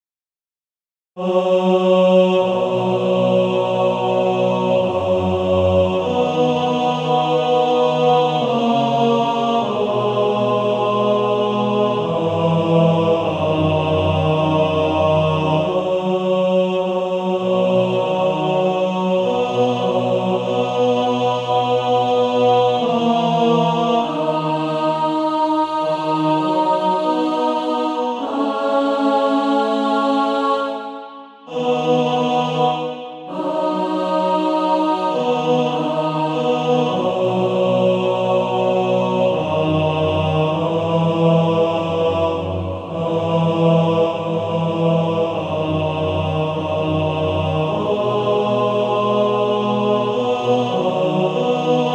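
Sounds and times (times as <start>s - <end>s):
male choir singing: 1.2s - 51.9s.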